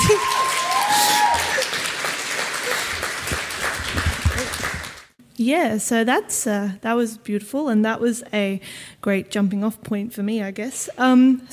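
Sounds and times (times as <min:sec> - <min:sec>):
round of applause: 0:00.0 - 0:05.2
speech: 0:05.4 - 0:11.5.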